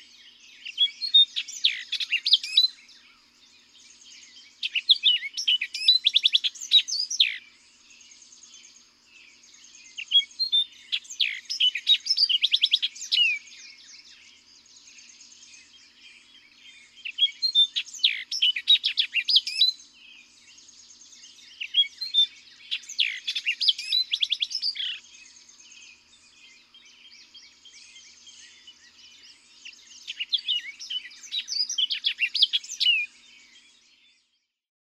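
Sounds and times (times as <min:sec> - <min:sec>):
Orchard Oriole singing: 0:00.0 - 0:34.6.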